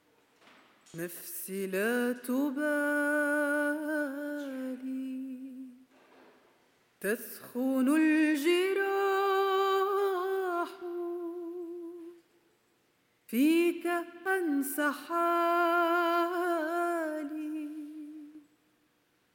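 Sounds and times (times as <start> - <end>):
thanksgiving song: 0.8 - 5.8, 7.0 - 12.3, 13.3 - 18.5.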